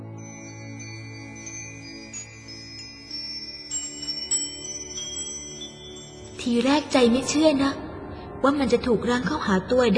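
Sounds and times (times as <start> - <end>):
bell signal ringing to mark the start of a game: 0.1 - 7.3
speech: 6.4 - 7.8, 8.4 - 9.9.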